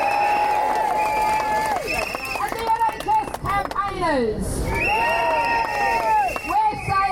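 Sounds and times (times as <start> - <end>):
crowd whistles: 0.0 - 3.0, 4.7 - 7.0
crowd cheering and whooping: 0.0 - 3.4, 4.6 - 7.0
speech: 4.1 - 4.8.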